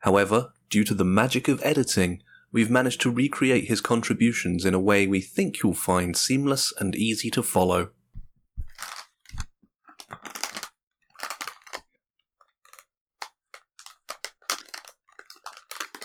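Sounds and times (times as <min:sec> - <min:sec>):
speech: 0:00.0 - 0:08.0
plastic snack bag rustling and crackling: 0:08.6 - 0:16.0.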